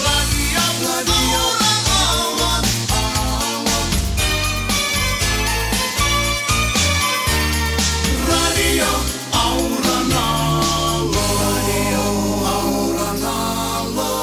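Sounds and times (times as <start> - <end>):
sung jingle: 0.1 - 14.1.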